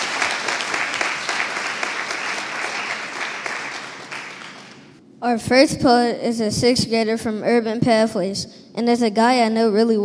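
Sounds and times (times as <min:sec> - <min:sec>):
audience applause: 0:00.0 - 0:04.9
speech: 0:05.2 - 0:10.0.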